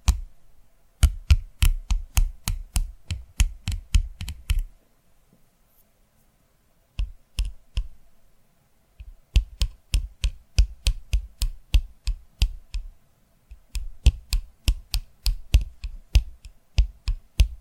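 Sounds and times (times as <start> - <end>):
sharp tapping clicks: 1.0 - 4.7, 7.0 - 7.9, 9.0 - 12.9, 13.5 - 17.6.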